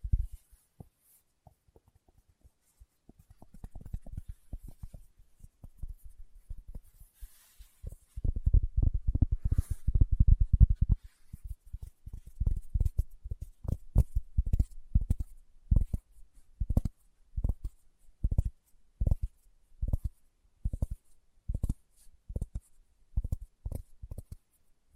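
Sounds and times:
fingertips tapping on a surface: 0.0 - 7.1, 7.8 - 24.9.

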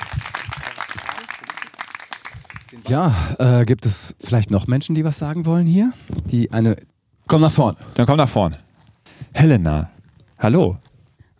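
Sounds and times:
audience applause: 0.0 - 2.9
speech: 2.7 - 8.7, 9.4 - 10.9.

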